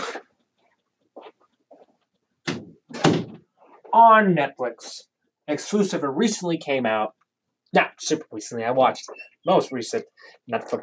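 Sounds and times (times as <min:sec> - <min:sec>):
door being closed: 0:02.5 - 0:03.4
speech: 0:03.9 - 0:10.8.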